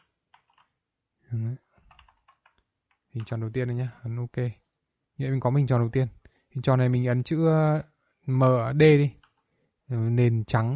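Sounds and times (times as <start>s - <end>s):
computer keyboard typing while entering a value in a drawing program: 0.0s - 0.8s, 1.8s - 3.4s, 9.1s - 9.5s
speech: 3.2s - 4.6s, 5.2s - 9.2s, 9.9s - 10.7s.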